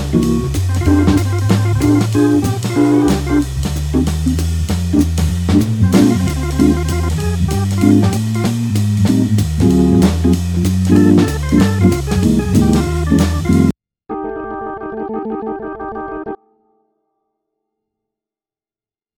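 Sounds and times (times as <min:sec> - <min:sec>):
jazz blues music in F: 0:00.0 - 0:13.8.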